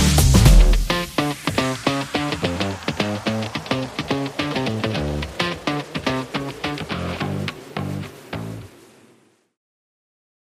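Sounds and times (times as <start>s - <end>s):
energetic rock music: 0.0s - 8.0s.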